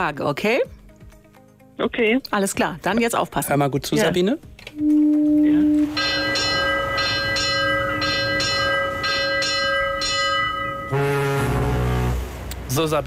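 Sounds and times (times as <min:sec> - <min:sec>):
speech: 0:00.0 - 0:00.8, 0:01.8 - 0:06.1, 0:12.8 - 0:13.0
ship's bell ringing as a ship leaves harbour at a sailing festival: 0:04.8 - 0:12.2
held tonal drone: 0:04.8 - 0:12.6.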